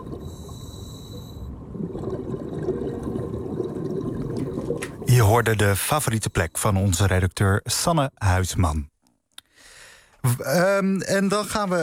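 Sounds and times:
group of humpback whales swimming past underwater: 0:00.0 - 0:06.4
speech: 0:05.2 - 0:08.9, 0:10.2 - 0:11.8.

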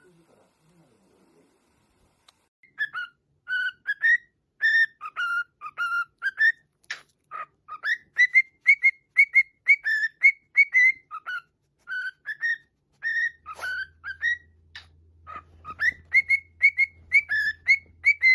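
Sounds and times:
cockatiel whistling: 0:02.6 - 0:06.6, 0:07.7 - 0:18.3.

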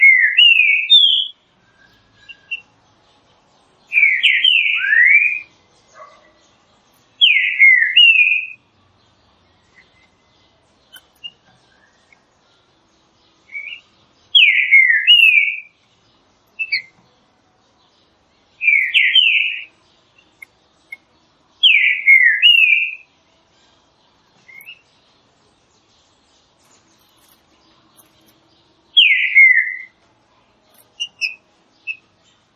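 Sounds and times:
green-winged saltator singing: 0:00.0 - 0:02.8, 0:03.9 - 0:06.4, 0:07.2 - 0:08.6, 0:13.4 - 0:15.8, 0:16.6 - 0:17.0, 0:18.6 - 0:19.7, 0:20.3 - 0:23.1, 0:24.4 - 0:24.9, 0:28.0 - 0:30.0, 0:31.0 - 0:32.1.

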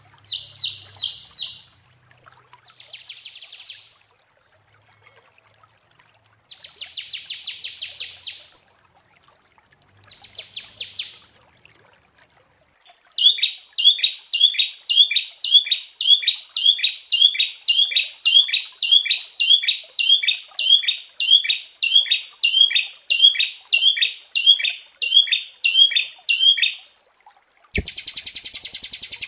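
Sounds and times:
prinia singing: 0:00.2 - 0:01.8, 0:02.6 - 0:04.0, 0:06.5 - 0:08.6, 0:10.1 - 0:11.3, 0:13.2 - 0:26.9, 0:27.8 - 0:29.2.

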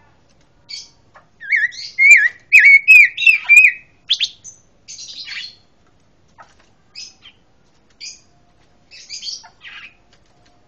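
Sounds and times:
Pancawarna singing: 0:00.6 - 0:05.7, 0:08.0 - 0:08.3, 0:08.9 - 0:10.0.

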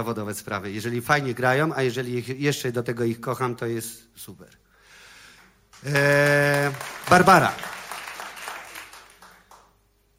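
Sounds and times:
speech: 0:00.0 - 0:04.6, 0:05.8 - 0:07.8
audience clapping after bass solo: 0:05.4 - 0:10.1.

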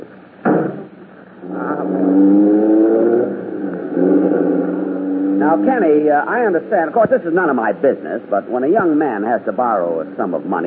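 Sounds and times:
taxi cab engine driving off: 0:00.0 - 0:10.6
speech: 0:01.5 - 0:02.8, 0:05.4 - 0:10.6.

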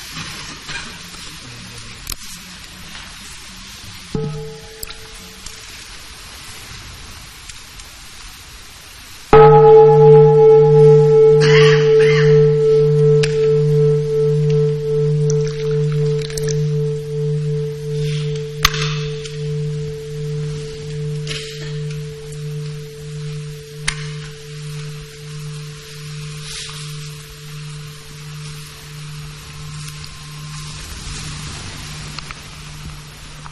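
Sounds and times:
meditation bell ringing: 0:04.2 - 0:05.8, 0:09.4 - 0:33.5.

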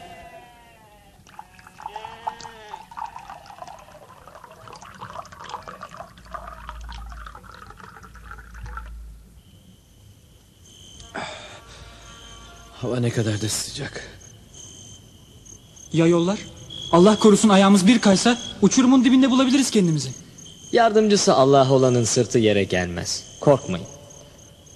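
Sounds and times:
water poured to fill a waterskin: 0:01.2 - 0:09.1
speech: 0:12.8 - 0:14.2, 0:15.9 - 0:24.0.

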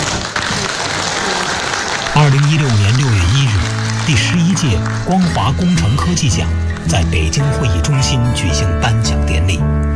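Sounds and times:
audience applause at an engineering award ceremony: 0:00.0 - 0:07.4
speech: 0:02.2 - 0:03.2, 0:04.1 - 0:09.9.

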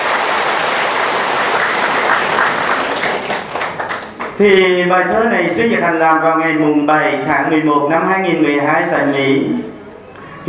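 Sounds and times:
audience applause: 0:00.0 - 0:04.4
speech: 0:04.4 - 0:09.7.

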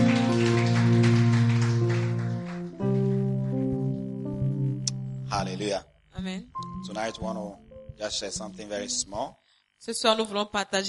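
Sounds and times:
audience clapping: 0:00.0 - 0:03.8
sustained keyboard chords: 0:00.0 - 0:09.3
speech: 0:05.4 - 0:10.8.

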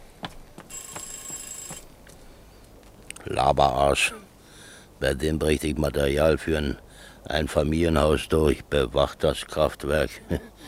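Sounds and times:
telephone ringing with a shrill buzzing burst: 0:00.7 - 0:01.9
speech: 0:03.3 - 0:04.3, 0:05.0 - 0:10.6.

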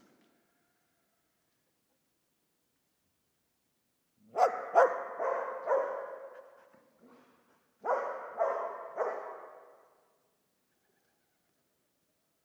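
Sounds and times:
dog barking: 0:04.3 - 0:10.0.

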